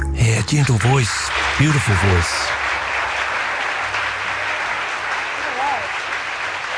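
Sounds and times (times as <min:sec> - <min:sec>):
audience applause after a live song: 0:00.2 - 0:06.7
speech: 0:00.5 - 0:02.6.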